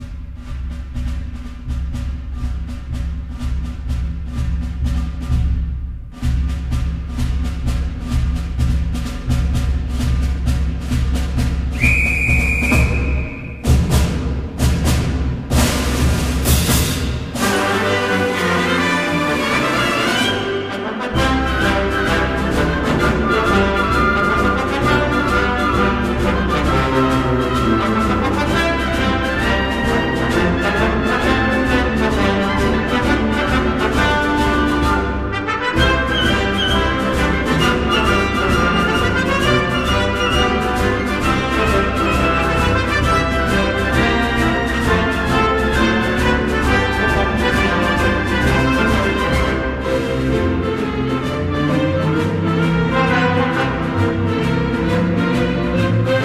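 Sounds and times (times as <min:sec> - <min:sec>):
orchestra: 0:00.0 - 0:56.2
trombones: 0:11.7 - 0:56.2.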